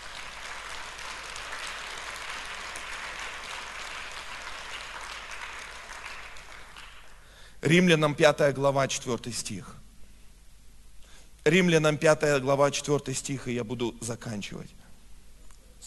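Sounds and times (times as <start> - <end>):
audience applauding: 0.0 - 7.4
speech: 7.6 - 9.8, 11.4 - 14.8.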